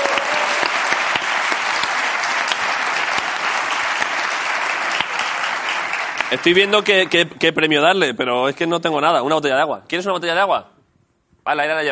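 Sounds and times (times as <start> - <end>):
audience applause: 0.0 - 7.4
speech: 6.3 - 10.7, 11.4 - 11.8.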